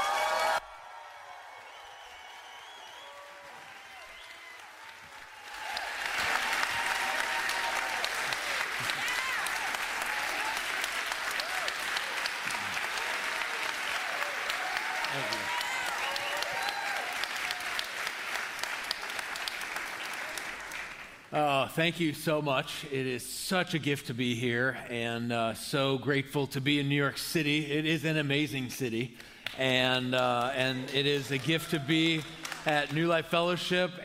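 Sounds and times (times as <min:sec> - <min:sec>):
audience at a church gathering in New York City applauding: 0:00.0 - 0:21.3, 0:29.4 - 0:33.2
speech: 0:21.8 - 0:34.0.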